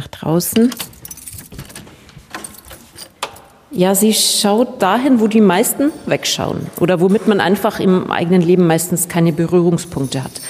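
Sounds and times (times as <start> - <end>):
speech: 0.2 - 0.9, 3.8 - 10.4
keys jangling while unlocking prison doors: 0.4 - 3.7.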